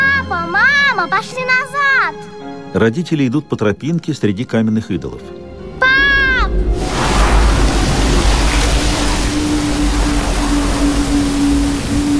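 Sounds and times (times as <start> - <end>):
speech: 1.0 - 5.4
gust of wind: 5.6 - 12.1
low rumble: 5.6 - 12.1
warbling tone: 5.8 - 12.1.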